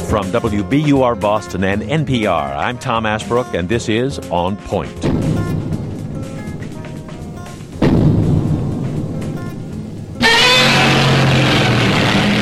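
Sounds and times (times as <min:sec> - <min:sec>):
speech: 0:00.1 - 0:05.1
Godzilla stomping: 0:07.7 - 0:09.1, 0:10.2 - 0:12.4
Godzilla roaring: 0:10.2 - 0:12.4.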